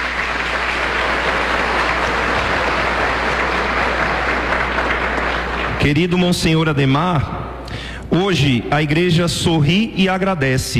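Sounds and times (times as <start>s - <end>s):
applause: 0.0s - 6.7s
speech: 5.8s - 7.4s, 8.1s - 10.7s.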